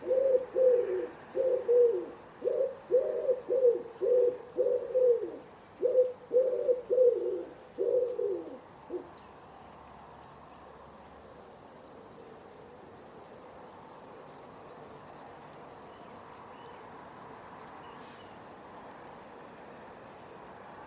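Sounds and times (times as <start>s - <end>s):
Common Wood Pigeon cooing: 0.0s - 9.2s.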